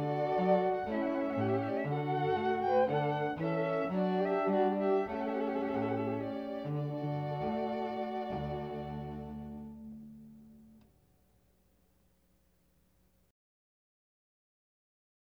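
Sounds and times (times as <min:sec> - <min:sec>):
string quartet: 0:00.0 - 0:10.9.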